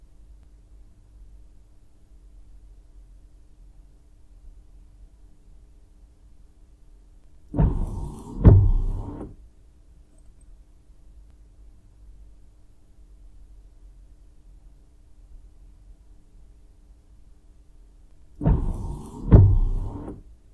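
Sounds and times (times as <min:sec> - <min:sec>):
car windshield wipers: 0:07.6 - 0:09.4, 0:18.4 - 0:20.2.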